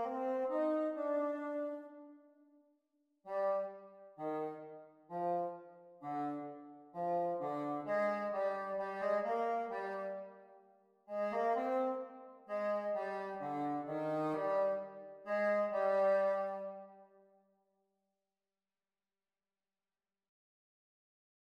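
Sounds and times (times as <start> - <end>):
bassoon duet practice: 0.0 - 2.0, 3.3 - 10.4, 11.1 - 16.9.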